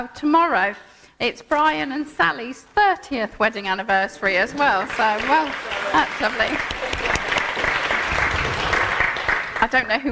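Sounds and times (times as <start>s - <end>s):
speech: 0.0s - 6.8s, 9.6s - 10.1s
audience clapping for a couple's 30th wedding anniversary: 4.4s - 10.1s.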